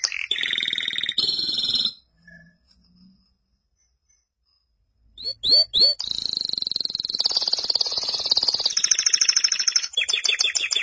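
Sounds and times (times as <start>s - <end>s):
canary singing: 0.0s - 2.6s, 5.2s - 10.8s.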